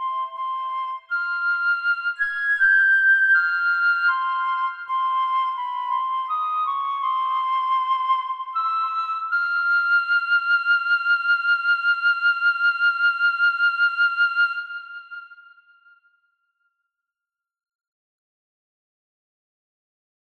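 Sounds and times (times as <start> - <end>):
kazabue solo: 0.0 - 16.2.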